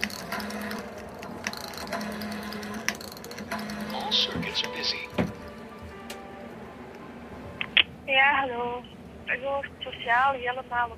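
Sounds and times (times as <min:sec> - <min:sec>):
rattling ratchet-like payphone mechanism: 0:00.0 - 0:06.0
coin going into a payphone: 0:00.0 - 0:06.6
speech: 0:04.4 - 0:05.2, 0:08.2 - 0:10.9.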